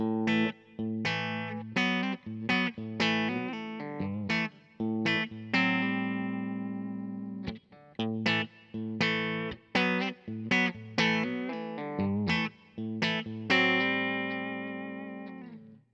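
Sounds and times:
Roswell electric guitar on bridge humbucker with clean tone: 0.0 - 15.8.

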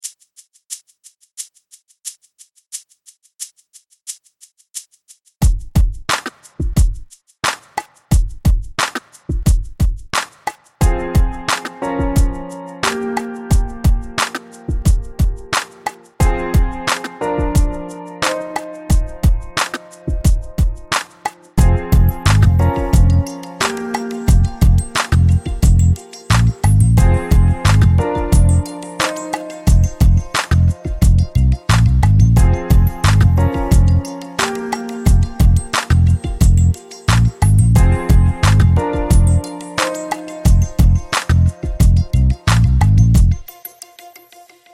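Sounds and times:
shaker: 0.0 - 44.7
drums: 5.4 - 43.5
piano: 10.8 - 44.7
bass: 21.6 - 23.3, 24.3 - 28.7, 29.7 - 34.0, 35.1 - 39.4, 40.5 - 43.5.

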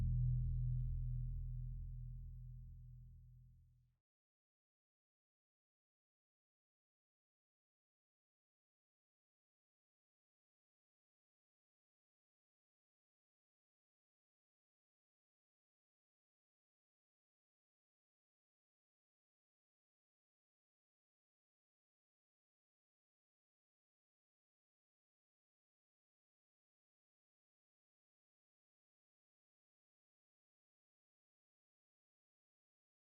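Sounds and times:
fretless bass chorus groove: 0.0 - 3.0.

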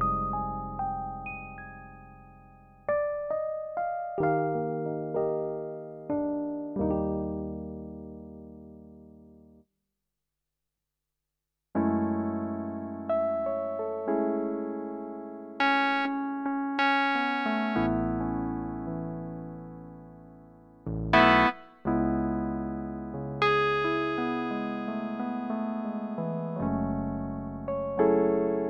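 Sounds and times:
electric piano: 0.0 - 9.6, 11.8 - 28.6.

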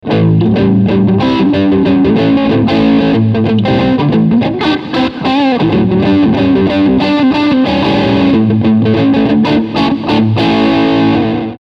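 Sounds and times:
crunch guitar tone: 0.0 - 11.6.

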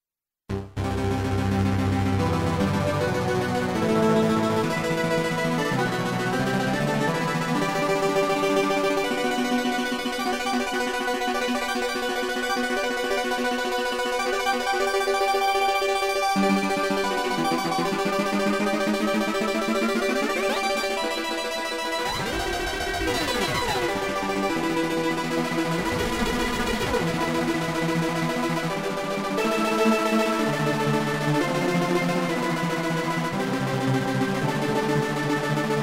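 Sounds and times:
UDO Super 6 synthesizer: 0.5 - 35.8.

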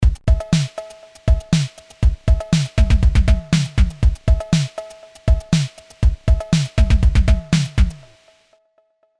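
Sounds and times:
distorted beat: 0.0 - 8.3.

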